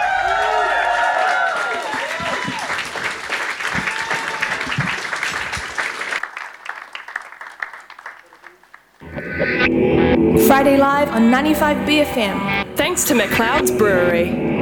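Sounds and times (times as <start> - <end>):
audience applause: 0.0 - 9.6
speech: 10.8 - 14.5.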